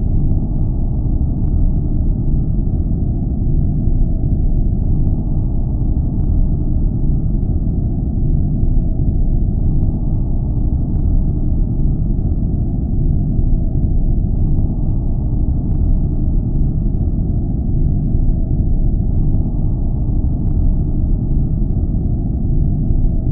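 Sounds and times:
science fiction planetary rumble ambience: 0.0s - 23.3s.

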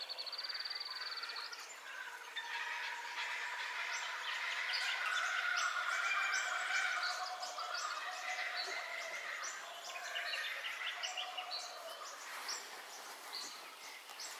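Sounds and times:
birds chirping and whistling in a dawn chorus: 0.3s - 14.3s.

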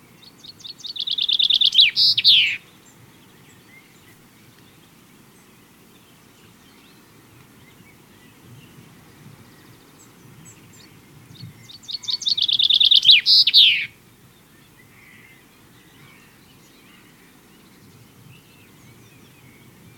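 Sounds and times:
chaffinch singing a rapid trill with end flourish: 0.4s - 2.6s, 11.4s - 13.9s.

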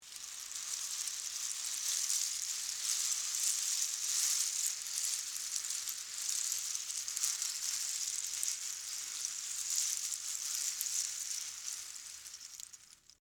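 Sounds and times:
pasta shells moving: 0.0s - 13.2s.

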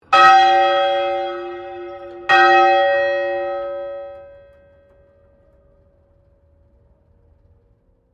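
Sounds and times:
St Pauls Cathedral Melbourne bell ringing: 0.0s - 5.5s.

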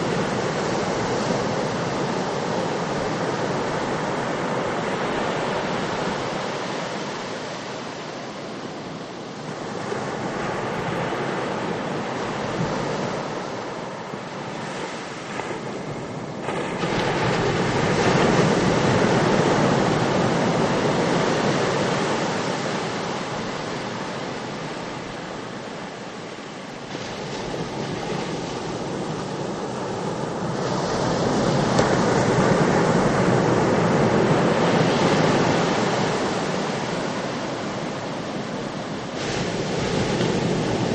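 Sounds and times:
ocean waves: 0.0s - 40.9s.

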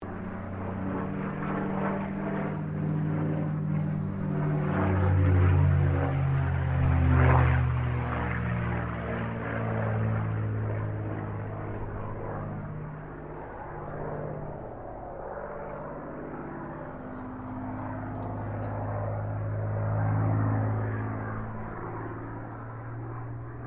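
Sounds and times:
CAC CA-18 Mustang Mk23 WW2 fighter plane flying: 0.0s - 23.6s.

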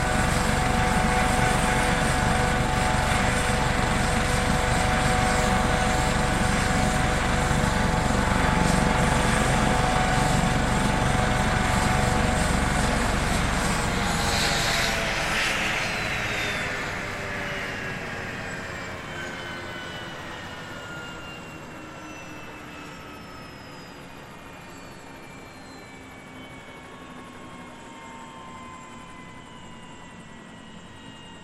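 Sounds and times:
HH-65 Dolphin helicopter shutting off: 0.0s - 23.4s.

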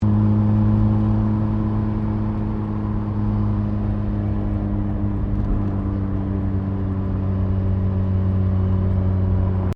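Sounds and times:
Mazda RX7 Series 3 engine easing off speed, heard inside: 0.0s - 9.7s.

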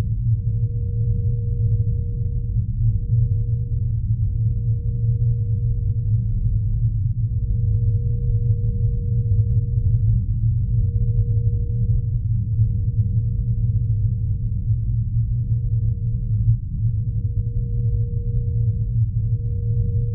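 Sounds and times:
sci-fi low whine: 0.0s - 20.1s
sci-fi subsonic rumble: 0.0s - 20.1s.

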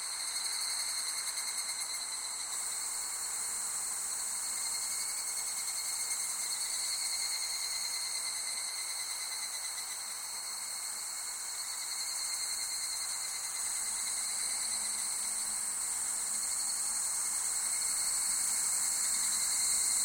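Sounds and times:
shrill summer insect chorus in Japan: 0.0s - 20.0s.

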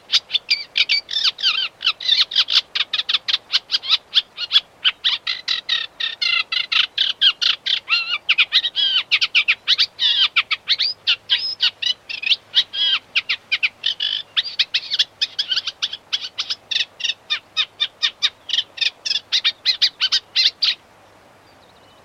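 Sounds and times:
unmated male warbler singing: 0.0s - 22.0s.

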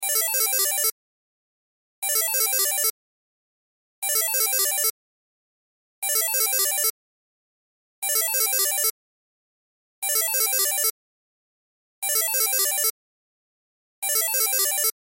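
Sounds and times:
cell phone ringtone: 0.0s - 0.9s, 2.0s - 2.9s, 4.0s - 4.9s, 6.0s - 6.9s, 8.0s - 8.9s, 10.0s - 10.9s, 12.0s - 13.0s, 14.0s - 15.0s.

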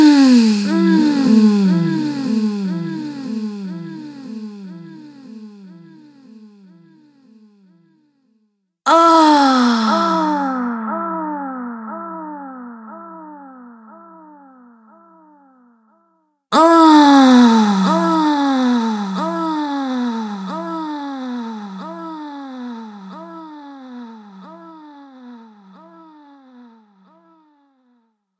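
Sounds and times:
woman groaning with delay effect: 0.0s - 3.4s, 8.9s - 10.8s, 16.6s - 21.5s.

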